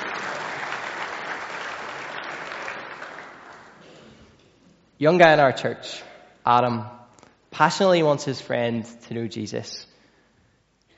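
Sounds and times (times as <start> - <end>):
audience applause: 0.0 - 3.8
speech: 5.0 - 7.0, 7.6 - 9.9.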